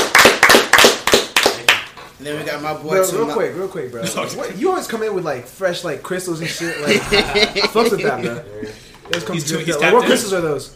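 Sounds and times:
hand clapping: 0.0 - 2.0
speech: 2.2 - 10.7
laughter: 6.4 - 8.7.

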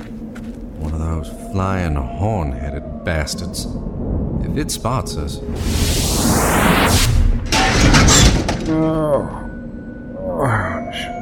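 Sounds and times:
speech: 1.2 - 7.2, 8.7 - 9.5
rising whoosh: 3.6 - 7.6
crunching metal: 7.3 - 9.0
shattering glass: 7.5 - 8.8.

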